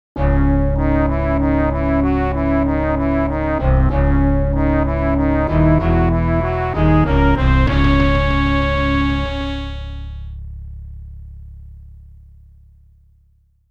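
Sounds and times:
defeat fanfare: 0.2 - 10.4.

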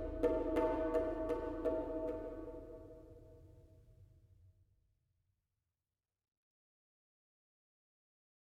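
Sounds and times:
world music: 0.0 - 3.2.

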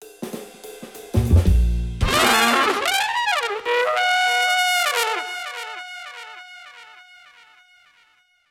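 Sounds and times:
trumpet: 2.0 - 8.2.

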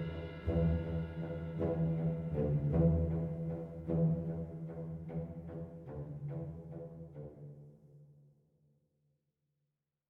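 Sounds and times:
world music: 0.0 - 7.2.

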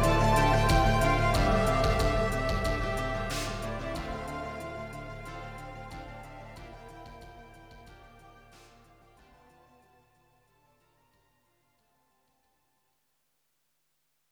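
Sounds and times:
continue music: 0.0 - 9.9.

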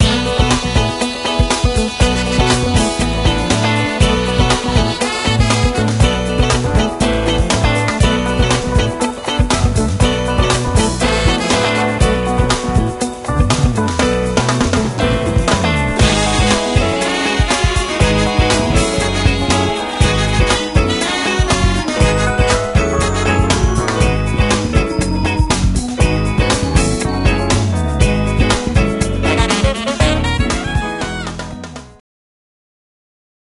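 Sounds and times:
dance music: 0.0 - 31.7.

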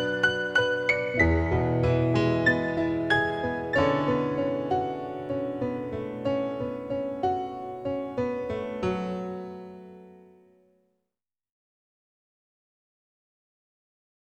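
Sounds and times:
piano: 0.0 - 10.7.

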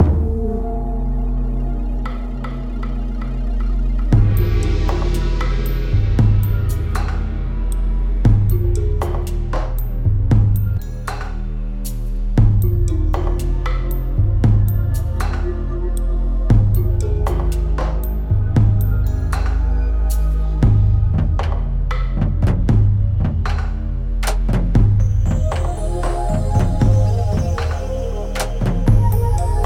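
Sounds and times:
ambient title music: 0.0 - 29.6.

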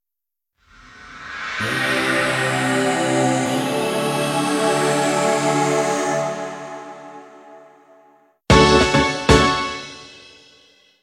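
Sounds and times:
golf jingle: 1.5 - 9.6.

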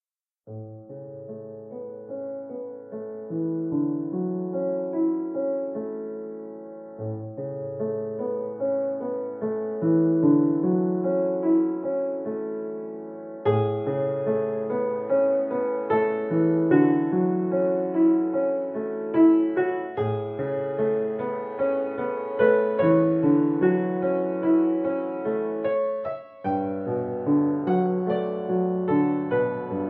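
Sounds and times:
piano: 0.4 - 29.8.

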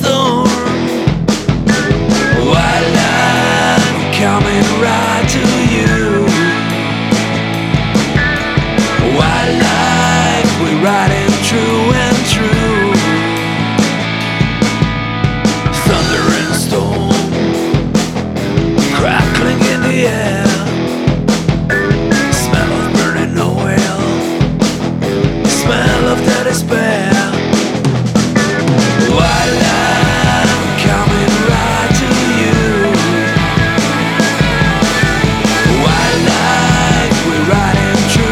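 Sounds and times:
rock music: 0.0 - 38.2.

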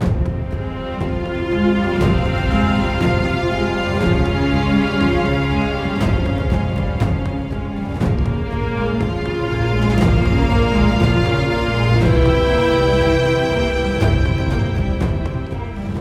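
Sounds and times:
string instrument: 0.0 - 16.0.

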